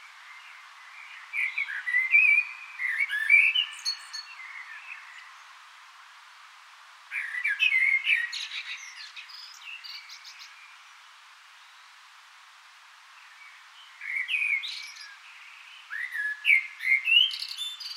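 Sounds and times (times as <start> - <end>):
common blackbird song: 0.3 - 5.4, 7.1 - 10.6, 14.0 - 17.9.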